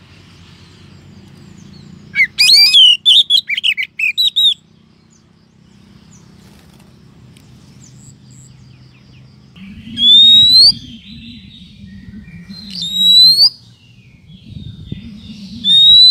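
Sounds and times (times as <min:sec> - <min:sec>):
bird chirping and twittering: 0:00.0 - 0:16.1.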